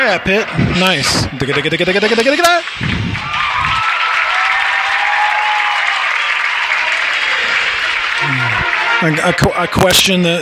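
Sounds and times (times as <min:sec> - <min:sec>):
speech: 0:00.1 - 0:03.4, 0:09.0 - 0:10.3
audience applause: 0:02.6 - 0:10.3.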